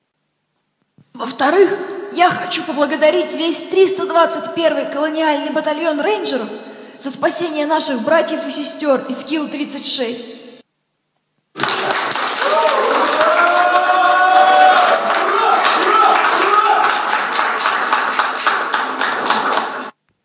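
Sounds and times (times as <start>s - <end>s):
speech: 1.2s - 10.4s
crowd applause: 11.6s - 20.0s.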